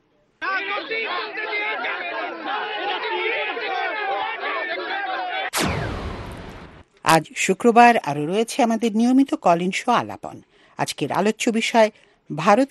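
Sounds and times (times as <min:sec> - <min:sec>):
protest crowd in India shouting and chanting: 0:00.4 - 0:06.1
sharp burst of noise: 0:05.5 - 0:06.9
speech: 0:07.1 - 0:12.6.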